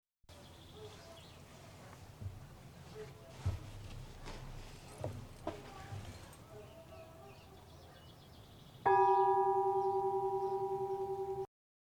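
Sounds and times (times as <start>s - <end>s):
bell ringing: 8.9s - 11.5s.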